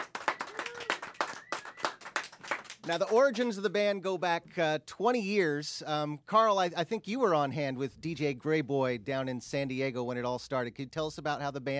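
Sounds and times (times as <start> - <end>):
audience applause for a band: 0.0 - 3.4
whistle in crowd: 0.2 - 2.1
speech: 2.9 - 11.7.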